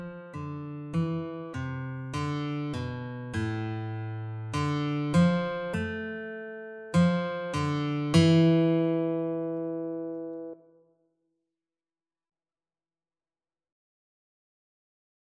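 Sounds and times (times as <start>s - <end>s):
guitar duet: 0.0s - 10.8s.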